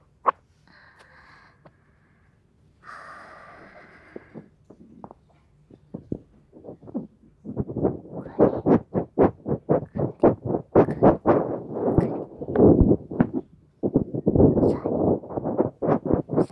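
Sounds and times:
screw-shaped ear pick cleaning the left ear: 3.5s - 16.5s.

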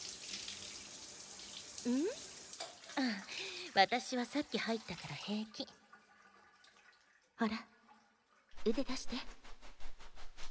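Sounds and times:
speech: 1.8s - 2.3s, 3.0s - 5.8s, 7.4s - 7.7s, 8.6s - 9.4s
sponge washing someone with water: 8.6s - 10.5s.

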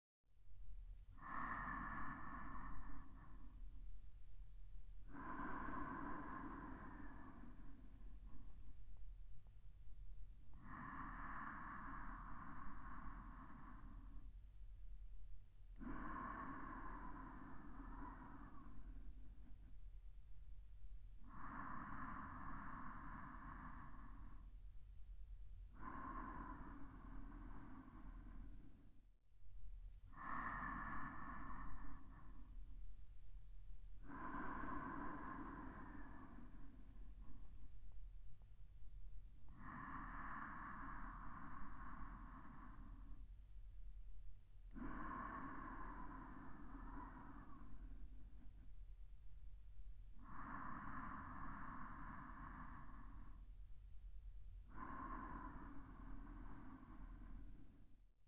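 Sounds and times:
breathing: 1.1s - 29.2s, 30.0s - 58.2s.

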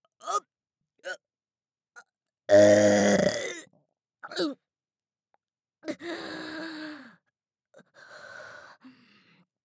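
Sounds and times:
extra-large burp: 2.5s - 3.6s.

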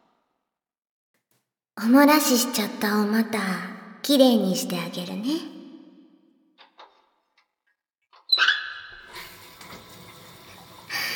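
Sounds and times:
speech: 1.8s - 5.6s
shower water running: 8.8s - 11.1s.

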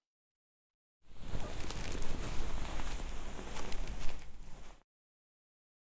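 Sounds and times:
wet face massage ASMR: 1.1s - 4.8s.

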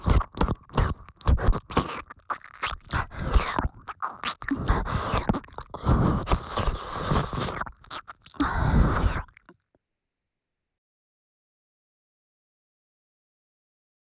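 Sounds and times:
ear licking on the left side: 0.0s - 9.5s.

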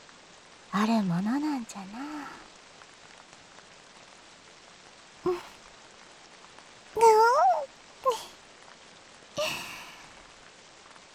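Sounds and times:
rain falling: 0.0s - 11.1s
speech: 0.7s - 2.4s
short cat-like calls: 5.3s - 5.6s, 7.0s - 8.3s.

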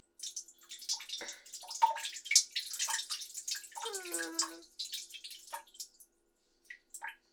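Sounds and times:
binaural recording of person urinating in toilet: 0.2s - 6.0s.

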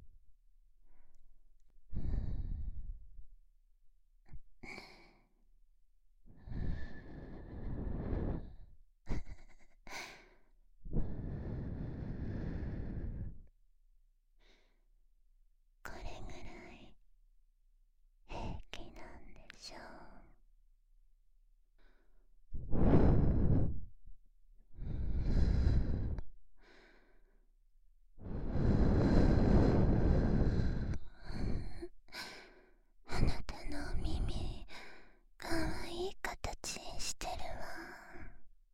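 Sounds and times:
breathing: 1.9s - 3.0s, 4.6s - 5.3s, 6.3s - 13.5s, 14.4s - 14.8s, 21.8s - 23.9s, 24.7s - 27.5s, 28.2s - 33.3s, 34.2s - 35.3s
whispering: 15.9s - 17.0s, 18.3s - 20.4s, 33.1s - 34.7s, 35.4s - 38.4s.

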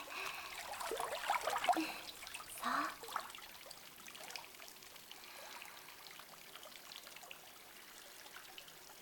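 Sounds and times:
scalp and ear massage at a hot spring: 0.2s - 3.3s.

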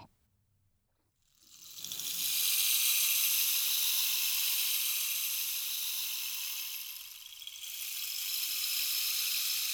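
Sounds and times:
rainstick being tilted: 1.5s - 9.7s.

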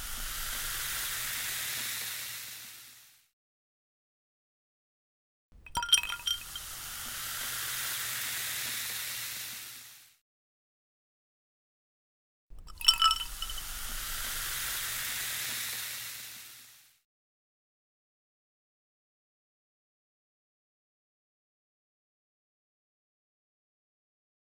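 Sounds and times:
carbonated drink fizzing: 0.0s - 3.1s, 5.6s - 10.1s, 12.5s - 16.9s.

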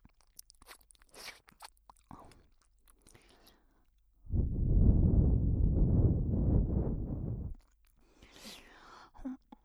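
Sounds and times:
erotic breathing: 4.3s - 7.6s.

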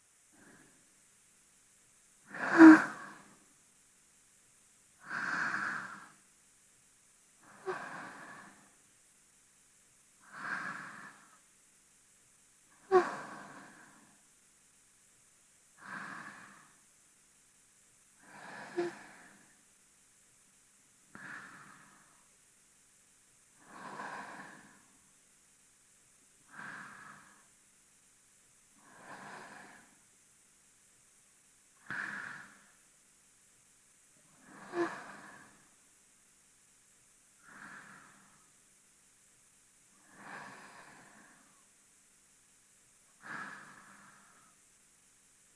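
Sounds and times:
person breathing in sleep, binaural: 0.3s - 0.8s, 2.2s - 3.5s, 5.0s - 6.3s, 7.4s - 8.8s, 10.2s - 11.4s, 12.8s - 14.2s, 15.8s - 16.8s, 18.2s - 19.6s, 21.1s - 22.3s, 23.5s - 25.0s, 26.4s - 27.6s, 28.8s - 30.1s, 31.8s - 32.8s, 34.2s - 35.8s, 37.4s - 38.6s, 40.0s - 41.7s, 43.2s - 44.7s.

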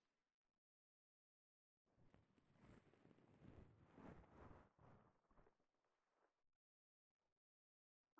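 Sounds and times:
ear cleaning scratching: 2.4s - 5.0s.

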